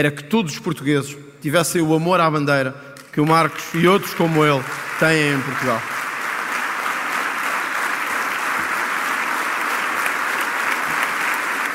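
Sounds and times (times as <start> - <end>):
speech: 0.0 - 6.0
audience applause: 3.2 - 11.7.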